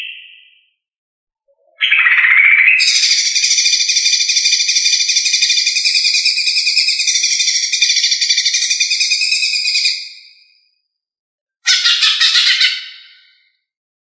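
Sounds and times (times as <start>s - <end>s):
Lesser green leafbird singing a rapid high-pitched chattering trill: 1.8s - 10.2s, 11.7s - 13.2s.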